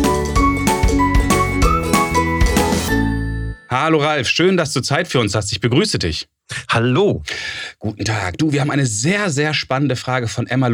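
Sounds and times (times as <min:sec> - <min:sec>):
electronic phone ringing jingle: 0:00.0 - 0:03.8
speech: 0:03.7 - 0:10.7.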